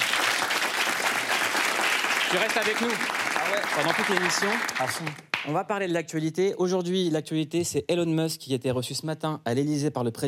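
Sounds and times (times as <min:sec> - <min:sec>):
audience applause: 0:00.0 - 0:05.5
speech: 0:02.3 - 0:10.2.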